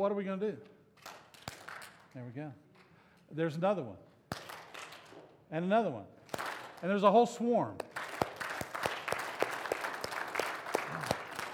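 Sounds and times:
speech: 0:00.0 - 0:01.2, 0:02.1 - 0:02.7, 0:03.3 - 0:04.1, 0:05.5 - 0:07.9
audience clapping: 0:01.0 - 0:02.1, 0:06.3 - 0:06.9, 0:07.8 - 0:11.5.

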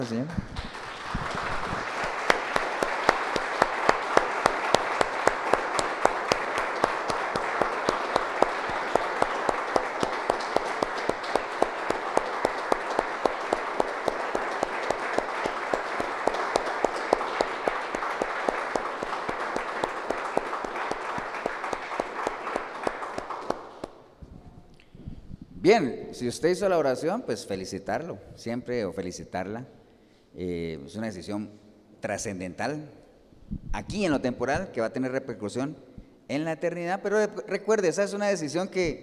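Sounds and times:
speech: 0:00.0 - 0:00.7, 0:25.7 - 0:29.8, 0:30.4 - 0:39.0
audience applause: 0:00.6 - 0:24.0.

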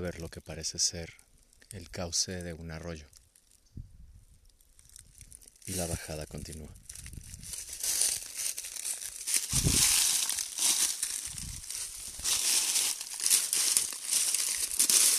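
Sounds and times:
speech: 0:00.0 - 0:03.2, 0:05.7 - 0:06.8
footsteps crunching through dry leaf litter: 0:04.8 - 0:15.1.

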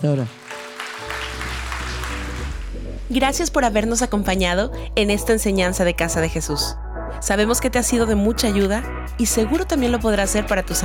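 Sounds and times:
speech: 0:00.0 - 0:00.4, 0:03.1 - 0:10.8
audience applauding: 0:00.0 - 0:03.0.

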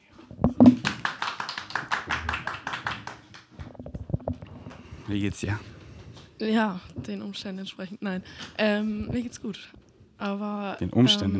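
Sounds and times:
applause: 0:00.6 - 0:03.7
speech: 0:05.1 - 0:05.7, 0:06.4 - 0:11.3.

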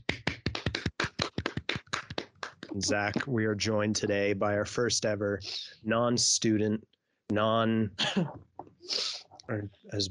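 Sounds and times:
clapping: 0:00.0 - 0:03.3
speech: 0:02.7 - 0:10.0.

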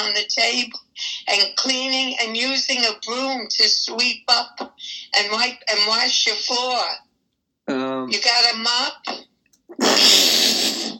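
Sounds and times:
speech: 0:00.2 - 0:07.1, 0:07.7 - 0:10.9
person sneezing: 0:09.7 - 0:10.9.

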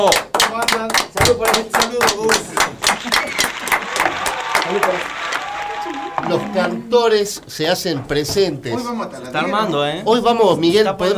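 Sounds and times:
speech: 0:00.0 - 0:00.3, 0:01.3 - 0:02.4, 0:06.3 - 0:11.1
audience applause: 0:01.8 - 0:06.8
laughter: 0:02.4 - 0:06.8.

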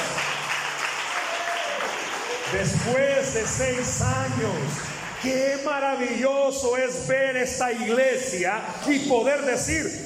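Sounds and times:
audience applause: 0:00.0 - 0:05.8
speech: 0:02.5 - 0:10.0.

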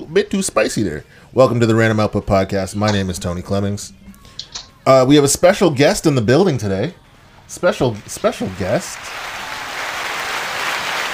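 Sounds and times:
speech: 0:00.1 - 0:04.0, 0:04.8 - 0:09.4
crowd applause: 0:08.4 - 0:11.1.

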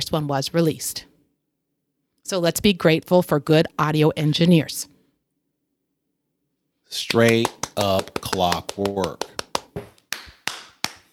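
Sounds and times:
speech: 0:00.1 - 0:01.1, 0:02.3 - 0:04.9, 0:06.9 - 0:09.9
hand clapping: 0:07.0 - 0:11.1.

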